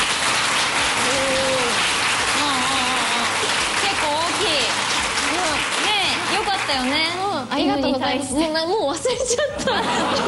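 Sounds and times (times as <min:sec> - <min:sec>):
audience clapping: 0:00.0 - 0:07.5
speech: 0:06.8 - 0:10.2
laughter: 0:09.0 - 0:10.2.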